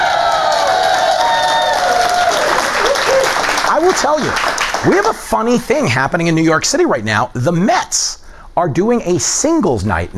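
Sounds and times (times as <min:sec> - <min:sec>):
New York City studio audience cheering: 0:00.0 - 0:05.2
speech: 0:03.8 - 0:10.1.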